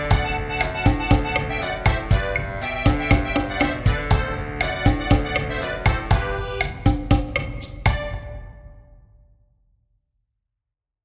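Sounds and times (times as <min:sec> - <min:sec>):
samba music: 0:00.0 - 0:08.7.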